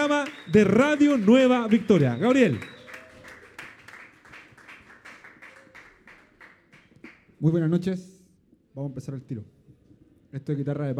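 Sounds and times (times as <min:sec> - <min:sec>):
audience applause: 0:00.0 - 0:07.2
speech: 0:00.3 - 0:02.8, 0:07.4 - 0:08.1, 0:08.8 - 0:09.5, 0:10.3 - 0:10.9.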